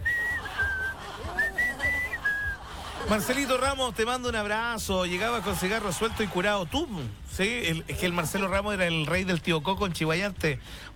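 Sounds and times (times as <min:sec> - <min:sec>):
person whistling a short tune: 0:00.0 - 0:02.8
laughter: 0:00.1 - 0:08.8
speech: 0:03.1 - 0:10.9.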